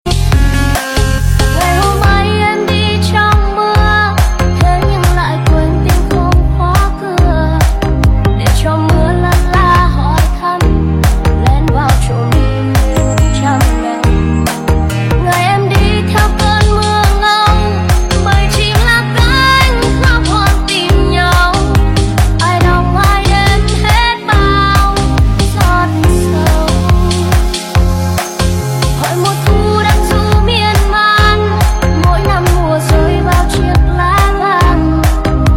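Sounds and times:
remix music: 0.0s - 35.5s.

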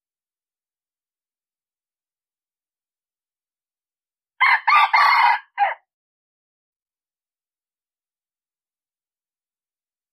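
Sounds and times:
red junglefowl crowing: 4.4s - 5.9s.

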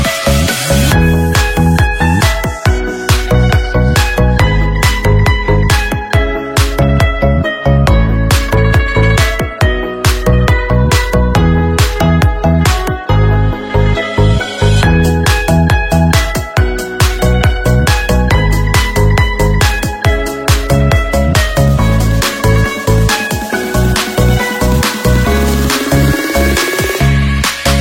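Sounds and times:
instrumental ringtone remix without lyrics: 0.0s - 27.7s.

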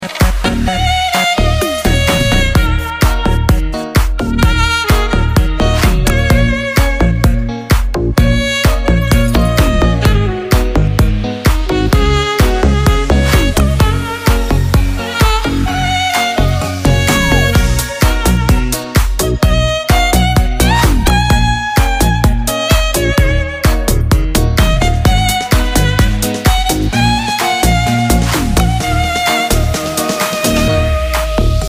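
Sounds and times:
saxophone remix: 0.0s - 31.6s.

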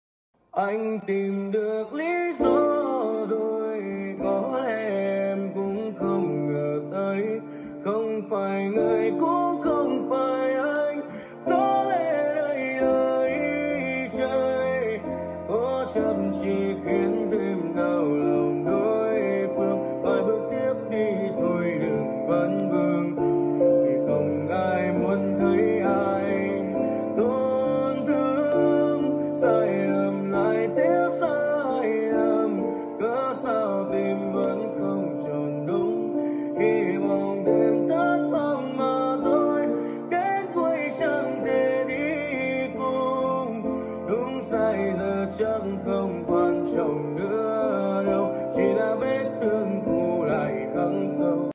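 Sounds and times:
piano cover: 0.6s - 51.5s.

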